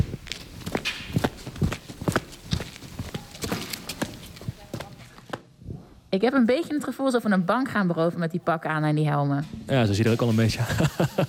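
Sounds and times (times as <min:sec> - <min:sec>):
footsteps walking toward a room: 0:00.0 - 0:05.4
faint murmur: 0:02.8 - 0:06.1
speech: 0:06.2 - 0:11.2
laughter: 0:10.4 - 0:11.2.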